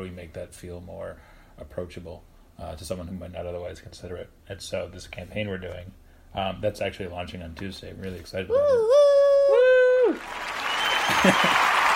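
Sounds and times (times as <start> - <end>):
speech: 0.0 - 9.2, 11.2 - 11.7
clapping: 10.1 - 11.9.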